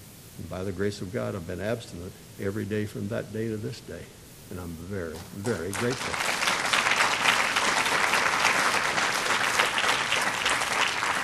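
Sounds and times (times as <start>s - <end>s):
speech: 0.4s - 6.4s
audience applause: 5.5s - 11.2s.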